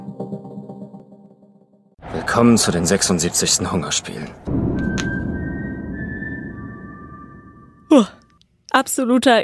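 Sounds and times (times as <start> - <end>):
speech: 2.3 - 5.1, 7.9 - 8.1, 8.9 - 9.3
Spotttölpel whistle: 4.7 - 7.9.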